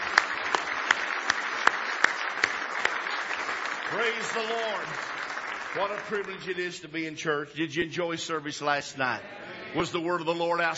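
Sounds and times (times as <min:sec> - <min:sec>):
audience hand clapping: 0:00.0 - 0:07.4
speech: 0:03.9 - 0:05.1, 0:05.7 - 0:10.7.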